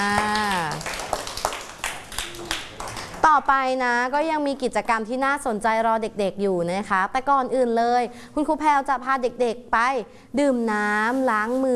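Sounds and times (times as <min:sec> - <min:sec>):
children clapping for a classmate: 0:00.0 - 0:03.3
speech: 0:03.4 - 0:11.7.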